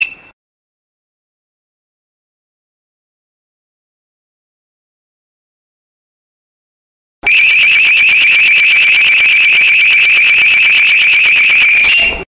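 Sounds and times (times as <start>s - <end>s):
infrared passage detector: 7.3s - 12.2s.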